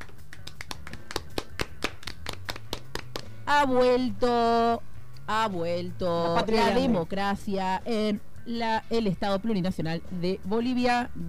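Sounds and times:
applause in the hall: 0:00.0 - 0:03.4
speech: 0:03.5 - 0:11.2.

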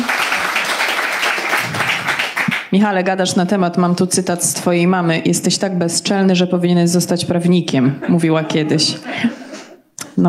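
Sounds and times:
audience applause: 0:00.0 - 0:02.7
speech: 0:02.7 - 0:09.4
laughter: 0:08.0 - 0:09.8.

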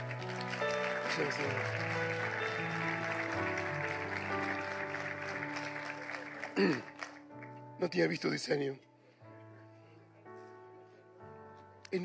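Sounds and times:
applause: 0:00.0 - 0:07.6
speech: 0:01.2 - 0:02.6, 0:06.6 - 0:06.9, 0:07.8 - 0:08.9.

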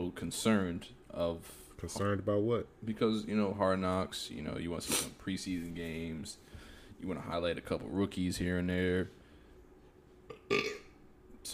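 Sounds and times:
speech: 0:00.0 - 0:09.2, 0:10.5 - 0:10.8
burp: 0:10.3 - 0:11.0.

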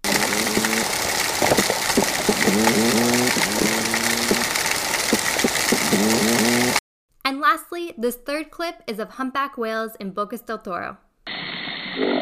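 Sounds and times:
toadfish underwater calls: 0:00.0 - 0:01.1, 0:01.9 - 0:06.8
steady hiss: 0:00.0 - 0:06.8
speech: 0:08.0 - 0:11.0, 0:12.0 - 0:12.2.

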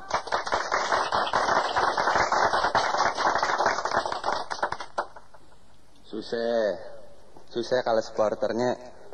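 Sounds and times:
applause: 0:00.0 - 0:05.3
speech: 0:06.2 - 0:07.0, 0:07.6 - 0:08.9.

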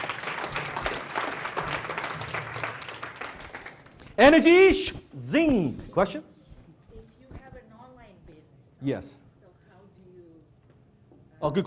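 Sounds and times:
round of applause from a group: 0:00.0 - 0:04.5
speech: 0:04.2 - 0:06.3, 0:08.8 - 0:09.2, 0:11.4 - 0:11.6.

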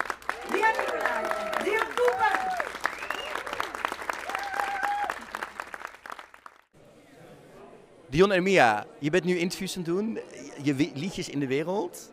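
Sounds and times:
audience applause: 0:00.0 - 0:06.7
speech: 0:08.1 - 0:12.1.

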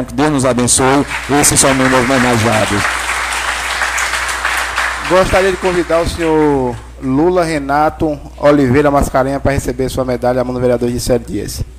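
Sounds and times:
speech: 0:00.0 - 0:03.2, 0:05.1 - 0:11.7
audience applause: 0:00.7 - 0:07.0.

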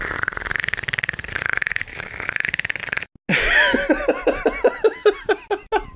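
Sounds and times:
voice imitating Predator clicking noise: 0:00.2 - 0:03.1
laughter: 0:03.3 - 0:05.9.

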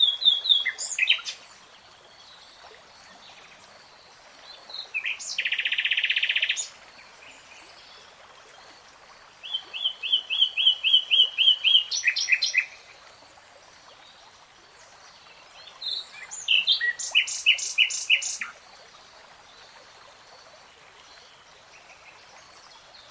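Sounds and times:
nightingale song: 0:00.0 - 0:02.4, 0:04.5 - 0:07.9, 0:09.4 - 0:12.9, 0:15.5 - 0:18.6.

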